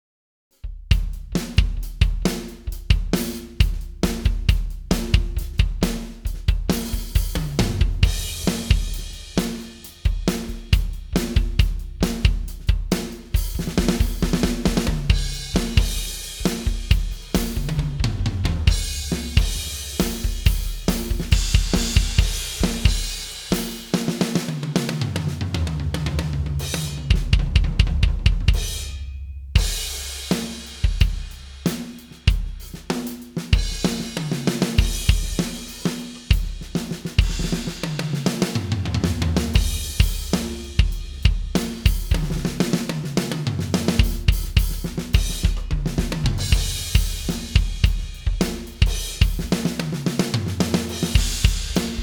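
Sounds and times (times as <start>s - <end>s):
drums: 0.5s - 52.0s.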